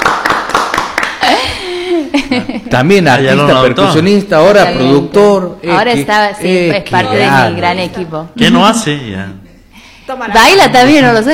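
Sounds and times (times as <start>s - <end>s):
audience applause: 0.0s - 1.3s
speech: 2.1s - 9.4s, 10.1s - 11.3s.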